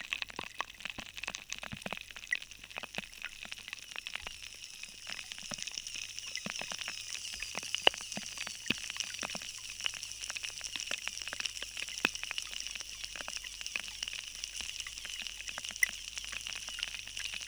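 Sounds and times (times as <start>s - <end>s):
rain choir: 0.2s - 17.4s.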